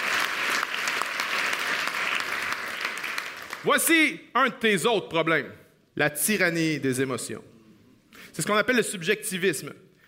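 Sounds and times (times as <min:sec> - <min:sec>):
audience applause: 0:00.0 - 0:03.7
speech: 0:03.6 - 0:07.5, 0:08.2 - 0:09.8.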